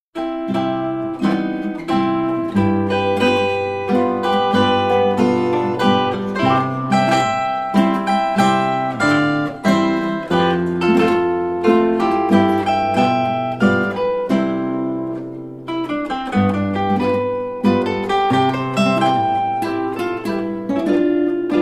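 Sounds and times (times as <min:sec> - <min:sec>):
alpine folk melodies: 0:00.2 - 0:21.5.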